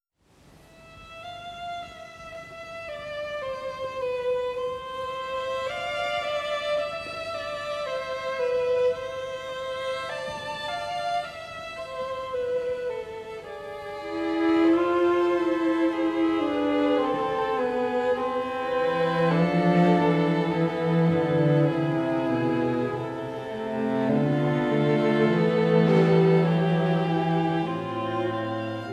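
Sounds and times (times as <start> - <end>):
string quartet in A minor: 0.7 - 28.9.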